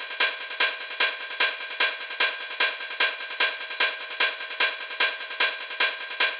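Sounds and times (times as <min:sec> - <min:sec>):
hard techno open hi-hat loop: 0:00.0 - 0:06.3.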